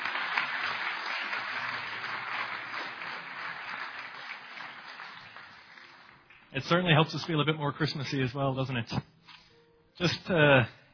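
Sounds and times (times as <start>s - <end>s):
audience applause: 0.0s - 6.5s
speech: 6.5s - 9.1s, 10.0s - 10.8s.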